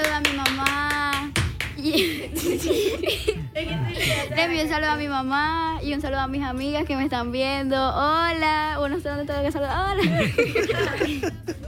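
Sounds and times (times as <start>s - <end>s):
audience clapping: 0.0s - 2.0s
laughter: 1.8s - 4.5s, 10.0s - 11.6s
speech: 4.4s - 11.6s.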